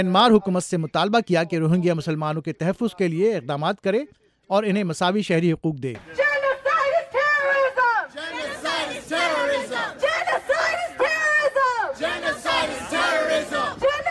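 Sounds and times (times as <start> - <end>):
speech: 0.0 - 6.3
protest crowd chanting slogans: 7.0 - 14.1.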